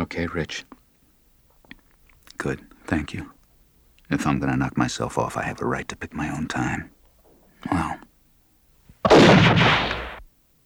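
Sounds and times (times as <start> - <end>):
speech: 0.1 - 0.8, 2.4 - 3.4, 4.1 - 7.0, 7.6 - 8.0
single gunshot fired into a pillow: 9.0 - 10.3.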